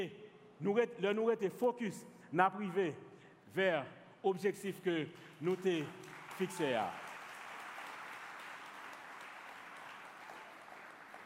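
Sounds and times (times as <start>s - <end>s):
speech: 0.0s - 7.1s
audience applause: 5.3s - 11.2s.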